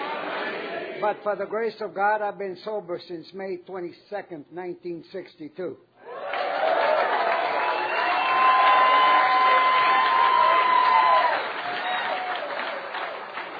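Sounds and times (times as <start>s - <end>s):
speech: 1.0s - 5.9s
whoops and cheers: 6.0s - 12.8s
audience clapping: 6.1s - 13.5s.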